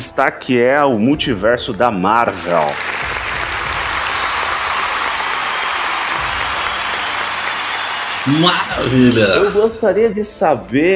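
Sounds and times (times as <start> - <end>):
speech: 0.0 - 3.1, 8.2 - 10.9
audience applause: 2.4 - 9.7.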